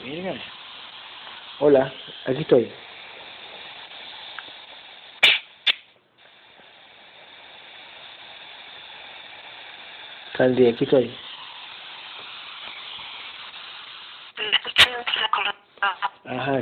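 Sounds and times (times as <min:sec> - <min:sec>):
speech: 0:00.0 - 0:00.6, 0:01.6 - 0:02.8, 0:10.4 - 0:11.2
steady hissing static: 0:00.0 - 0:16.5
voice on a poor call line cutting in and out: 0:14.4 - 0:16.2.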